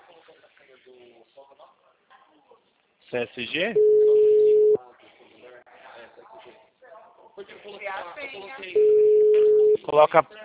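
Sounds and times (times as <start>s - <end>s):
speech: 0.9s - 4.2s, 7.4s - 10.4s
telephone call tone: 3.8s - 4.8s, 8.8s - 9.8s.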